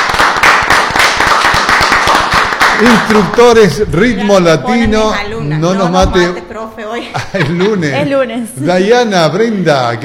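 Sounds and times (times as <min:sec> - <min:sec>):
audience clapping for young dancers at a Latin rhythm dance masterclass: 0:00.0 - 0:04.1
speech: 0:02.8 - 0:10.0
laughter: 0:06.9 - 0:08.3.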